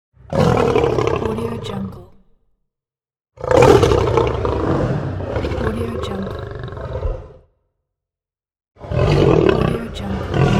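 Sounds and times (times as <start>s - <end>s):
lions: 0.3s - 2.2s, 3.4s - 7.5s, 8.8s - 10.5s.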